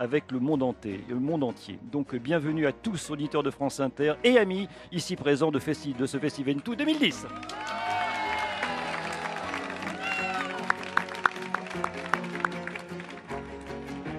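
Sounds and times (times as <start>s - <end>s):
speech: 0.0s - 7.9s
large outdoor festival crowd cheering and applauding: 7.2s - 14.1s.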